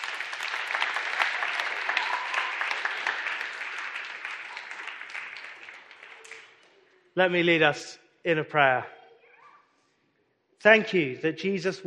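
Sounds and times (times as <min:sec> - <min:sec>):
audience applause: 0:00.0 - 0:06.9
speech: 0:07.2 - 0:09.0, 0:10.6 - 0:11.8.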